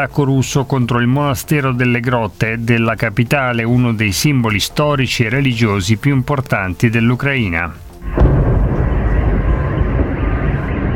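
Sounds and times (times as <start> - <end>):
speech: 0.0 - 8.2
oil refinery explosion boom: 8.0 - 10.9.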